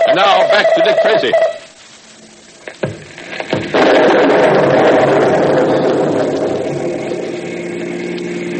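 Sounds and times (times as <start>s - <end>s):
speech: 0.2s - 1.5s
thunder from a lightning storm: 2.3s - 8.5s
sharp knocks: 2.7s - 4.1s.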